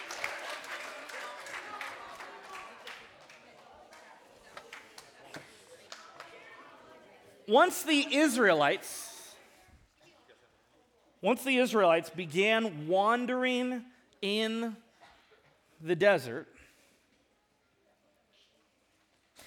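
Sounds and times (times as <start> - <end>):
scattered applause at a church service: 0.0 - 6.9
speech: 7.5 - 9.0, 11.2 - 14.8, 15.8 - 16.6
person speaking loudly: 7.5 - 9.4, 11.2 - 14.8, 15.8 - 16.5.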